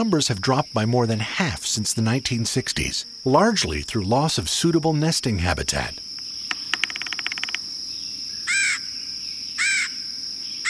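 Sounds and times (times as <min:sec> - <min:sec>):
speech: 0:00.0 - 0:06.1
steady high-pitched insect drone: 0:00.0 - 0:10.6
red-headed woodpecker giving harsh rasping calls: 0:05.7 - 0:10.0
rapid tapping clicks: 0:06.5 - 0:07.6.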